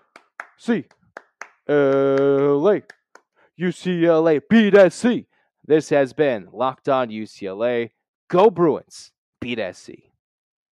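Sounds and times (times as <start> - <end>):
hand claps: 0.0 - 3.3
speech: 0.6 - 1.0, 1.7 - 3.0, 3.6 - 10.1.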